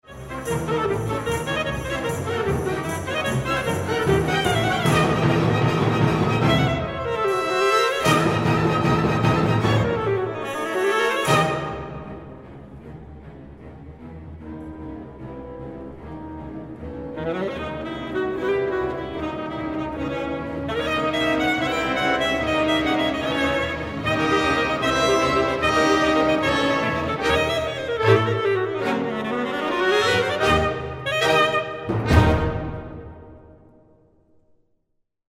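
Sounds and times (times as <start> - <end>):
saxophone: 0.0 - 12.1, 16.8 - 32.6.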